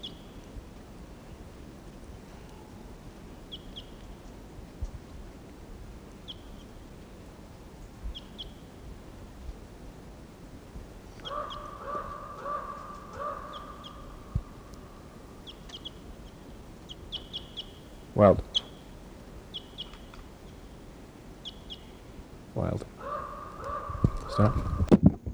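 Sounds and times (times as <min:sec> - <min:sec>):
wild bird chirping: 0:11.2 - 0:24.9
speech: 0:18.2 - 0:18.4.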